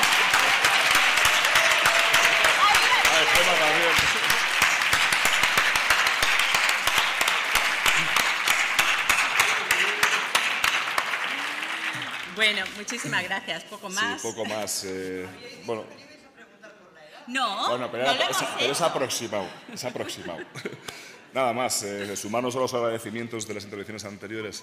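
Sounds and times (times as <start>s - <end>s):
audience applause: 0.0s - 13.1s
speech: 12.5s - 16.1s, 17.3s - 24.6s
laughter: 17.7s - 22.6s.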